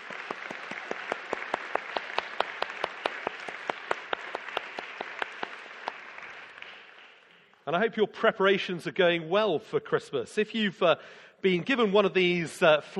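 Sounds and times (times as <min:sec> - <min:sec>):
audience applause: 0:00.0 - 0:07.3
speech: 0:07.7 - 0:12.9.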